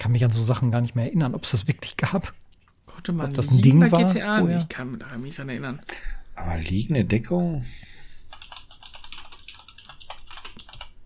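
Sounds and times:
speech: 0.0s - 8.0s
computer keyboard typing: 8.3s - 11.0s.

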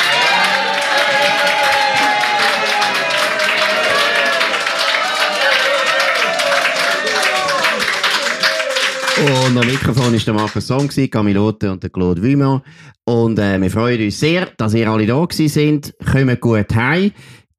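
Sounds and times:
faint crowd voices and cheering: 0.0s - 10.9s
audience applause: 0.0s - 11.0s
speech: 9.2s - 17.4s.

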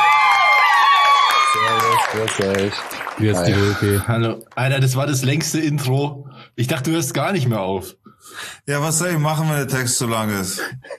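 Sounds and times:
inserted crowd cheering and applause sound effect: 0.0s - 4.0s
speech: 2.1s - 10.9s.

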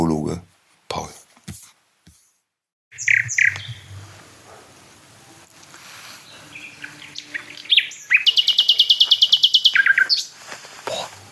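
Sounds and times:
nightingale singing: 2.9s - 11.3s.

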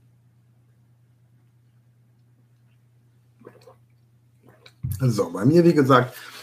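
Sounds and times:
low electrical hum: 0.0s - 6.4s
big sip of café au lait: 3.4s - 4.8s
speech: 3.4s - 6.3s.

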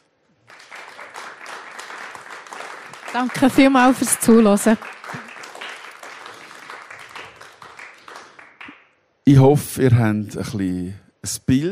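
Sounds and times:
audience applause: 0.4s - 8.8s
speech: 3.1s - 5.2s, 9.3s - 11.6s.

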